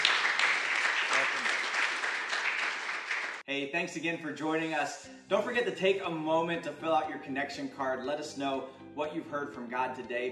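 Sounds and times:
audience applause: 0:00.0 - 0:03.4
speech: 0:03.5 - 0:10.3.

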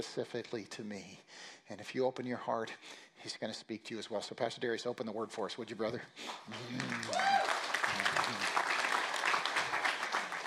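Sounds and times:
speech: 0:00.0 - 0:07.5
audience applauding: 0:06.4 - 0:10.4
person cheering: 0:06.5 - 0:08.8.

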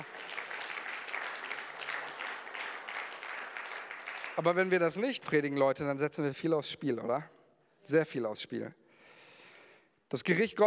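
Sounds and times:
audience clapping: 0:00.0 - 0:05.6
speech: 0:04.4 - 0:08.8, 0:10.1 - 0:10.6.

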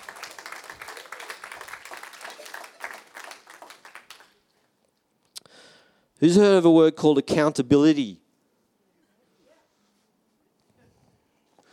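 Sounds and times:
audience clapping: 0:00.0 - 0:04.7
speech: 0:06.2 - 0:08.2.

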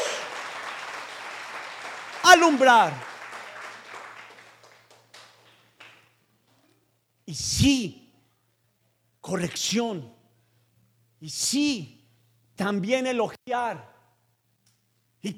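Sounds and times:
audience applause: 0:00.0 - 0:06.1
speech: 0:02.3 - 0:03.1, 0:07.3 - 0:08.0, 0:09.3 - 0:10.2, 0:11.2 - 0:12.0, 0:12.6 - 0:13.9.

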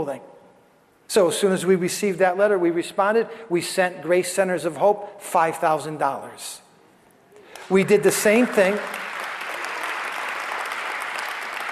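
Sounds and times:
speech: 0:00.0 - 0:00.3, 0:01.1 - 0:06.6, 0:07.7 - 0:09.1
audience applause: 0:07.6 - 0:11.7.

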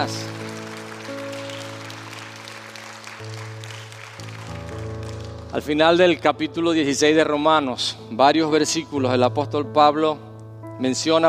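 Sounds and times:
speech: 0:00.0 - 0:00.3, 0:05.5 - 0:11.2
audience applauding: 0:00.0 - 0:06.1.

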